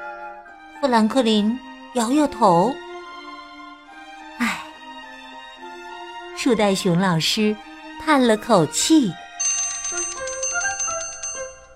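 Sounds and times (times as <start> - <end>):
speech: 0.8 - 2.8, 6.4 - 9.2
school class bell ringing: 8.4 - 11.7.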